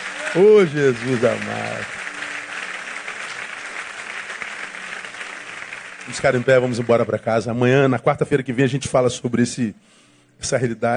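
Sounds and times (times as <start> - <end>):
audience applause: 0.0 - 7.6
speech: 0.3 - 2.0, 6.1 - 10.9.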